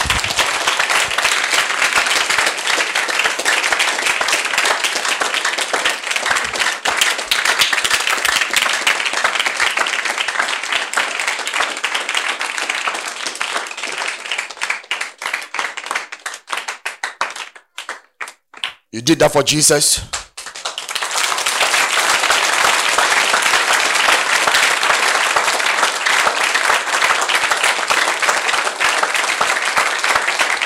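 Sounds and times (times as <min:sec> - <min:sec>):
audience clapping: 0:00.0 - 0:30.6
speech: 0:19.1 - 0:20.2.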